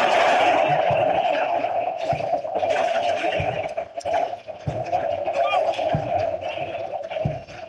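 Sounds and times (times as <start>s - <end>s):
stadium crowd ovation: 0.0s - 7.4s.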